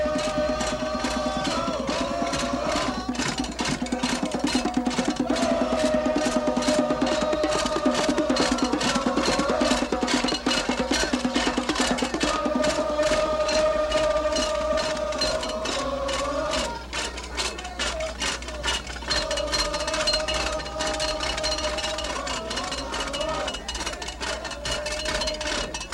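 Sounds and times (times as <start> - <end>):
audience noise: 0.0 - 25.9
crowd chanting: 0.0 - 25.9.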